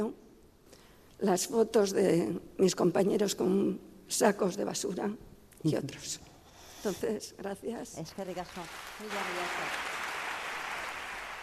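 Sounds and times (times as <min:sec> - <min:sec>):
speech: 0:00.0 - 0:00.2, 0:01.2 - 0:09.9
crowd applause: 0:08.3 - 0:11.4.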